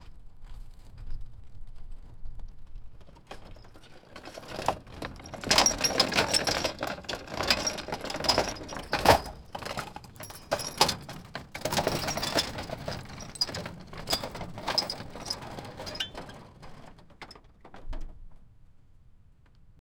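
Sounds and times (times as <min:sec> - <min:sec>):
small cart with small metal dragging: 0:02.9 - 0:18.0.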